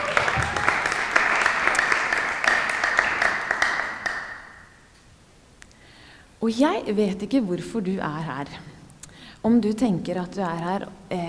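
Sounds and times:
audience applause: 0.0s - 4.7s
speech: 6.4s - 8.7s, 9.4s - 11.2s.

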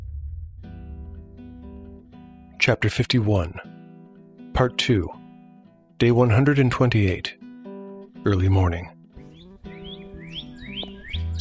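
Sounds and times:
speech: 2.6s - 3.7s, 4.6s - 5.2s, 6.0s - 7.4s, 8.2s - 9.0s
songbirds chirping: 8.2s - 11.4s.

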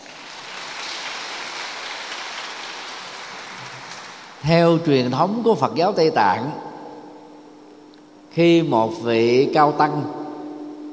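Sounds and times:
big round of applause: 0.0s - 4.4s
speech: 4.4s - 6.6s, 8.4s - 10.2s.

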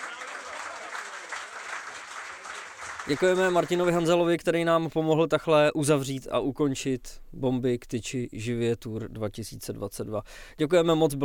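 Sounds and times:
audience applause: 0.0s - 4.1s
speech: 3.1s - 11.2s.

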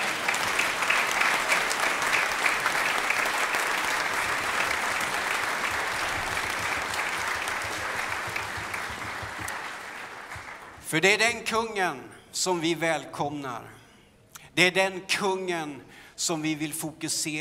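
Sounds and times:
crowd clapping: 0.0s - 10.9s
speech: 10.9s - 13.8s, 14.6s - 17.3s.

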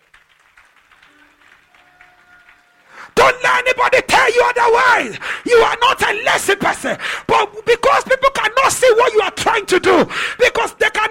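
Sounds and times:
audience clapping: 0.0s - 3.2s
speech: 3.2s - 11.0s.

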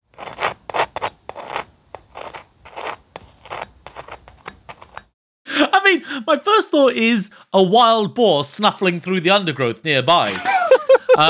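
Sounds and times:
knife spreading cold butter on toast: 0.1s - 5.1s
speech: 6.0s - 10.5s
laughter: 10.2s - 11.2s.

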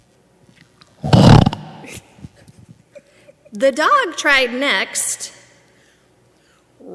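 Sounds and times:
voice imitating a pig oinking: 1.0s - 2.0s
speech: 3.6s - 5.4s.

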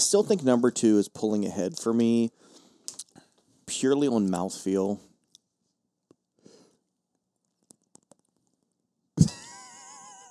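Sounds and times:
speech: 0.0s - 2.4s, 3.7s - 5.1s
wet mouth clicks and taps: 2.9s - 3.2s.

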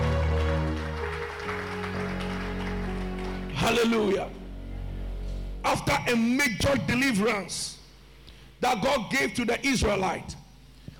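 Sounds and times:
audience clapping: 0.0s - 4.1s
sustained organ or keyboard chords: 0.0s - 7.4s
speech: 3.7s - 4.4s, 5.7s - 7.8s, 8.6s - 10.4s.

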